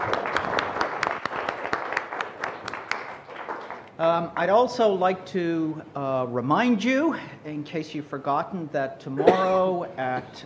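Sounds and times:
lecture audience applause: 0:00.0 - 0:03.9
speech: 0:04.0 - 0:10.4.

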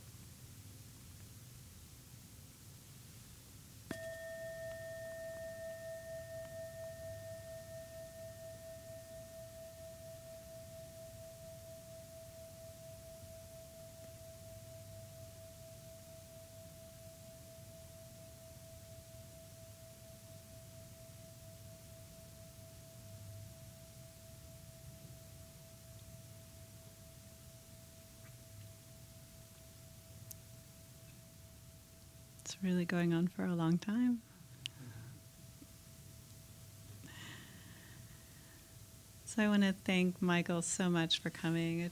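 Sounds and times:
meditation bell ringing: 0:03.9 - 0:31.5
speech: 0:32.6 - 0:34.3, 0:39.4 - 0:41.9.

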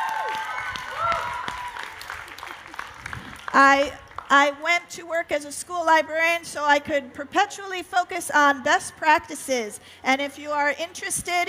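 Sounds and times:
audience shouts and whoops: 0:00.0 - 0:02.2
audience applause: 0:00.0 - 0:04.3
speech: 0:03.6 - 0:11.4.

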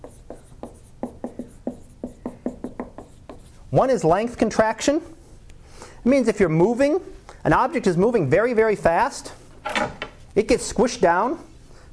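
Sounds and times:
lecturer writing on a board with pen or chalk: 0:00.0 - 0:03.6
speech: 0:03.7 - 0:05.2, 0:06.0 - 0:11.5.

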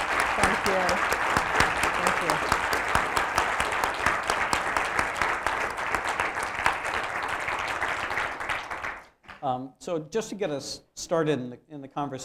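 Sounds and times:
audience applause: 0:00.0 - 0:09.2
speech: 0:00.4 - 0:01.2, 0:09.8 - 0:12.2.

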